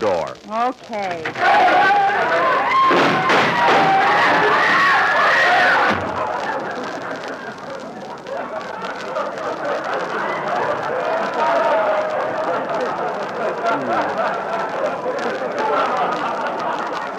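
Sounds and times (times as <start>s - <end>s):
speech: 0.0s - 4.8s
dense crowd murmur of a packed bargain store: 0.0s - 17.1s
laughter: 6.0s - 17.1s.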